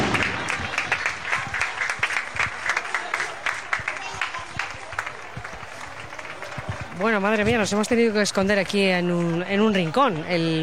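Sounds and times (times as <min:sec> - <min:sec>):
final applause from a crowd: 0:00.0 - 0:10.6
speech: 0:07.1 - 0:10.6.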